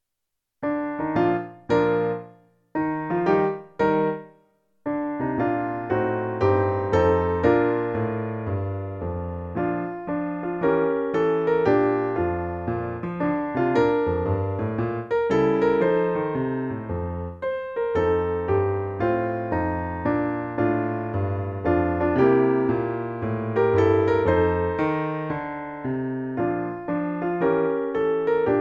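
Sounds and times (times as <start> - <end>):
piano note G: 0.6 - 28.6.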